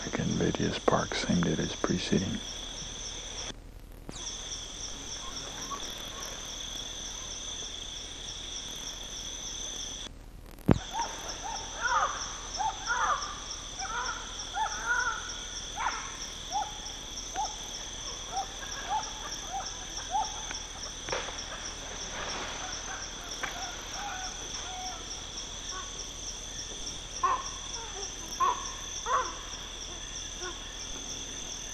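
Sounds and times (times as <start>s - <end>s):
steady high insect drone: 0.0s - 31.7s
speech: 0.1s - 2.6s
bay owl quavers and barks: 4.2s - 7.6s, 10.8s - 31.1s.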